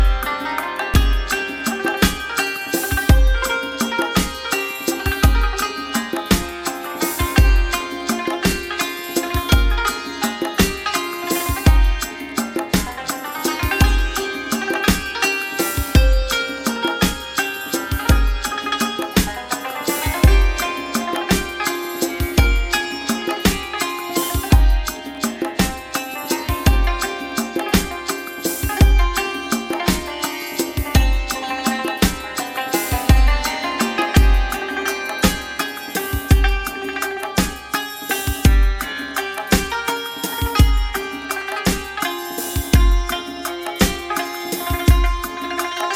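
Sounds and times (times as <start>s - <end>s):
santur: 0.0s - 45.9s.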